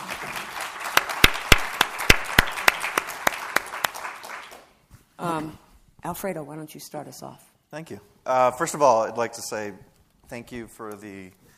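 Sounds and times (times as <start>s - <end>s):
sharp loud individual claps: 0.0s - 4.7s
audience applause for a panel: 0.0s - 4.8s
speech: 5.2s - 11.4s.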